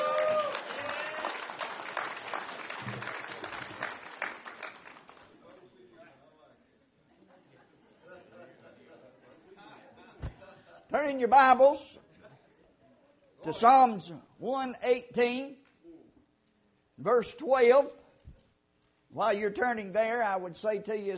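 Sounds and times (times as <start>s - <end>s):
audience applauding at a church sermon to welcome a preacher: 0.0s - 5.4s
laughter: 7.1s - 10.9s
speech: 11.0s - 12.0s, 13.5s - 15.6s, 17.0s - 18.0s, 19.2s - 21.1s.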